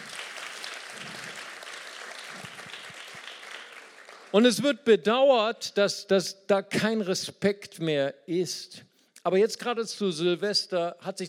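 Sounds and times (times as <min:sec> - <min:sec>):
applause: 0:00.0 - 0:04.7
speech: 0:04.3 - 0:11.2.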